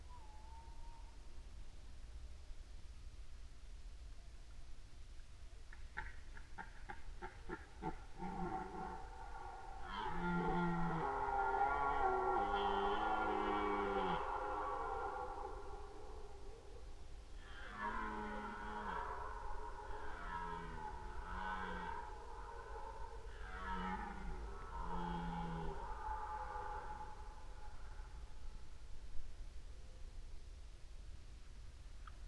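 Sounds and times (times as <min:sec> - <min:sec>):
hiss: 0:00.0 - 0:32.2
red deer roaring: 0:08.1 - 0:16.2, 0:17.4 - 0:28.0.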